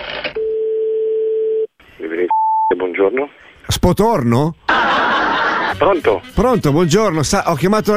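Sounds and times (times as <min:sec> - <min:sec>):
steady telephone tone: 0:00.4 - 0:01.7
speech: 0:02.9 - 0:04.7, 0:05.8 - 0:07.9
laughter: 0:04.7 - 0:06.9.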